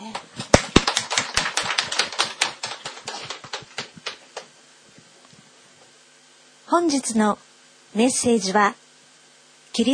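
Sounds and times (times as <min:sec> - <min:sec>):
audience applauding: 0:00.4 - 0:04.5
speech: 0:06.7 - 0:08.8, 0:09.8 - 0:09.9.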